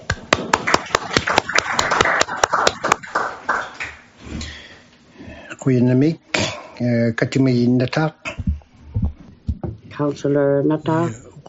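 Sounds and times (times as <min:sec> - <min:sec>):
audience applause: 0:00.3 - 0:04.0
speech: 0:05.6 - 0:06.2, 0:06.8 - 0:08.2, 0:10.0 - 0:11.4.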